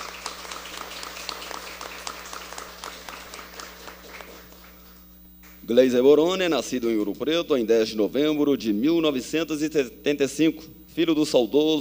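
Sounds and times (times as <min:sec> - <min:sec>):
audience applause: 0:00.0 - 0:05.0
speech: 0:05.7 - 0:11.7.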